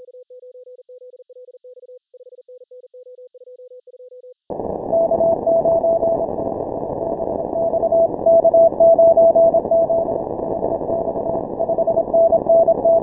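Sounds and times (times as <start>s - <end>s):
morse code beeps: 4.9s - 6.3s, 7.4s - 13.0s.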